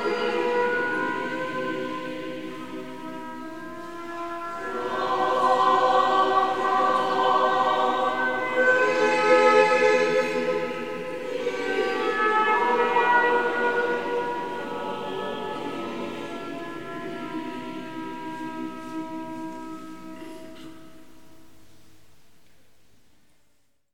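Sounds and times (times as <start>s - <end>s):
devotional yodel singing: 0.0s - 18.8s.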